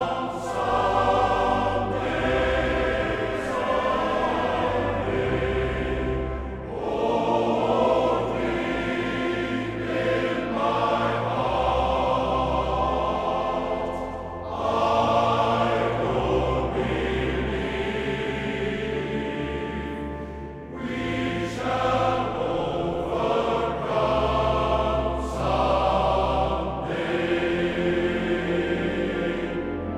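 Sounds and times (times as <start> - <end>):
male choir singing: 0.0 - 29.9.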